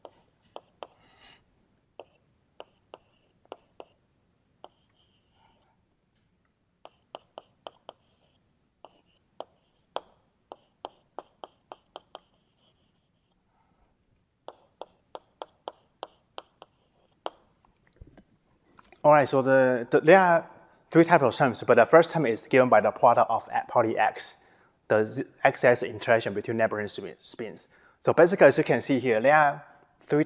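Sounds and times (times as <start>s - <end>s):
writing on a board during a lecture: 0.0s - 1.2s, 2.0s - 4.0s, 4.6s - 5.6s, 6.8s - 13.4s, 14.5s - 17.6s
speech: 19.0s - 30.2s.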